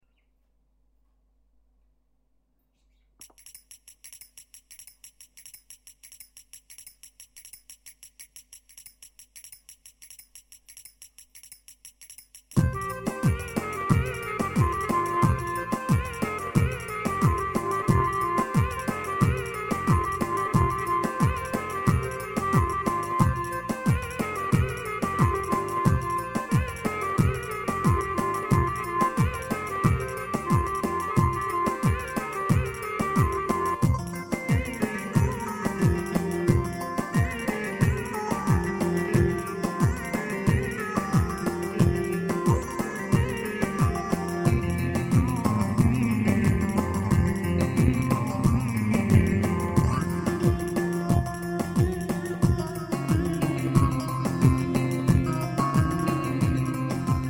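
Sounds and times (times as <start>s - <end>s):
Turkish oyun havasi folk dance tune on a PA 500: 12.6s - 57.2s.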